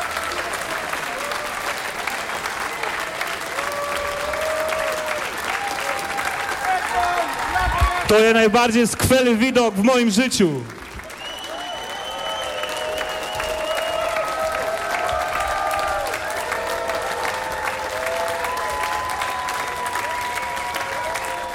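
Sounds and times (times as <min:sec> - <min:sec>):
crowd cheering: 0:00.0 - 0:21.5
frenetic applause from a large festival audience: 0:00.0 - 0:21.5
speech: 0:08.1 - 0:10.8
piercing whistles: 0:11.1 - 0:14.3.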